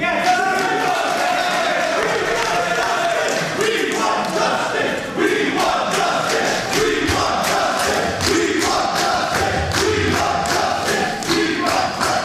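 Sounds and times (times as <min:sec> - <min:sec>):
crowd chanting at a meeting: 0:00.2 - 0:12.2
rhythmic clapping: 0:00.2 - 0:12.2.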